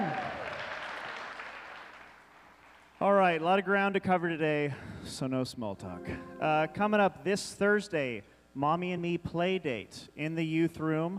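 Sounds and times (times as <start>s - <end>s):
audience applause for the worship team: 0.0s - 2.9s
speech: 3.0s - 11.1s.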